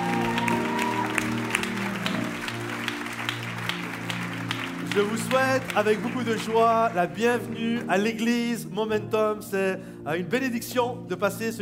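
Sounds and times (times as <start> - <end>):
audience applause: 0.0 - 8.0
speech: 5.0 - 11.5.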